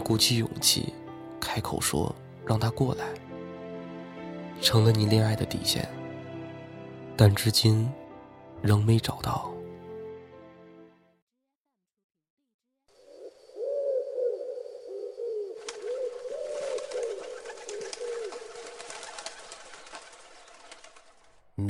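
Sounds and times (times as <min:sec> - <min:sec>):
speech: 0:00.1 - 0:03.2, 0:04.6 - 0:06.0, 0:07.2 - 0:08.0, 0:08.6 - 0:09.6
pigeon cooing: 0:13.1 - 0:19.4.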